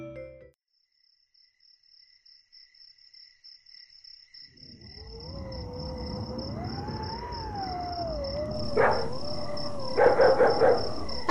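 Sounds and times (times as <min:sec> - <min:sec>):
strong wind howling outside the house: 0:04.6 - 0:11.3.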